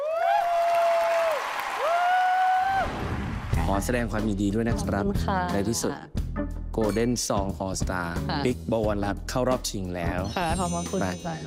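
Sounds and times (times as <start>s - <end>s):
audience applause welcoming a performer: 0.0s - 3.8s
speech: 3.7s - 11.4s.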